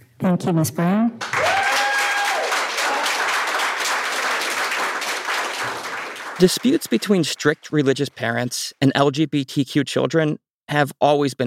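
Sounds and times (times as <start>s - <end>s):
speech: 0.2s - 1.3s, 6.4s - 11.4s
audience applause: 1.2s - 7.9s.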